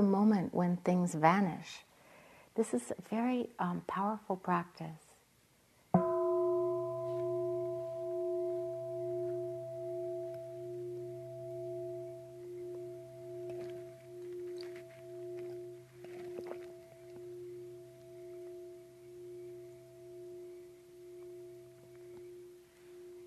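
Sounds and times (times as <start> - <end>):
speech: 0.0 - 1.9, 2.6 - 5.0
meditation bell ringing: 6.0 - 23.2.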